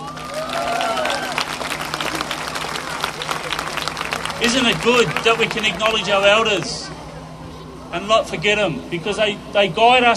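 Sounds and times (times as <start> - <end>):
crowd clapping: 0.0 - 6.8
speech: 4.4 - 6.9, 7.9 - 10.1.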